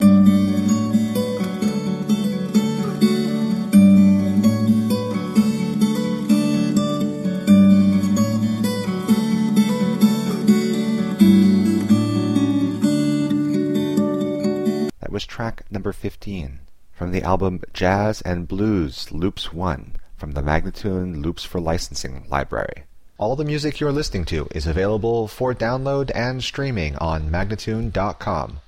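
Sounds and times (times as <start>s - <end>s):
jazz and blues loop in D: 0.0s - 14.9s
person speaking: 14.9s - 28.6s.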